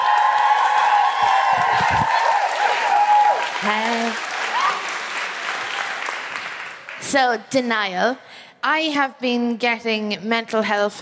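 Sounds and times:
audience woohoo cries: 0.0 - 6.1
live stage audience applause for a comedian: 0.0 - 7.0
speech: 3.6 - 4.3, 7.1 - 11.0.

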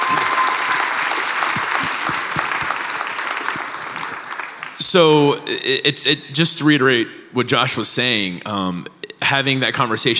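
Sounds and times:
audience round of applause: 0.0 - 5.2
speech: 4.9 - 10.1.

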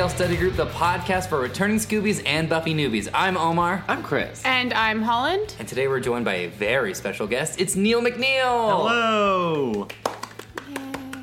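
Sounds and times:
speech: 0.0 - 10.1
hand clapping: 9.4 - 11.2.

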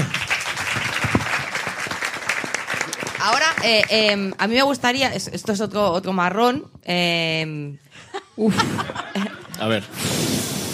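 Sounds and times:
applause: 0.0 - 4.4
speech: 3.2 - 10.3
laughter: 8.0 - 10.0.

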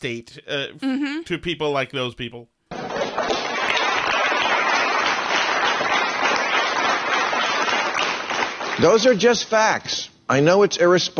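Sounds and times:
speech: 0.0 - 2.6, 8.8 - 11.1
audience applause: 2.7 - 9.1.

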